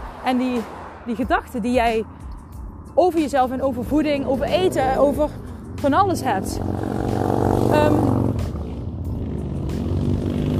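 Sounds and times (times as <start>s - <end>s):
motorcycles passing by: 0.0s - 10.5s
speech: 0.3s - 2.2s, 3.0s - 7.0s, 7.7s - 8.1s.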